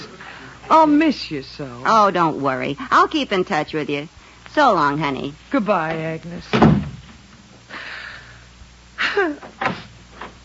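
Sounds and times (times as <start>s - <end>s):
speech: 0.7s - 6.8s
front door slamming shut: 6.5s - 7.2s, 9.5s - 9.9s.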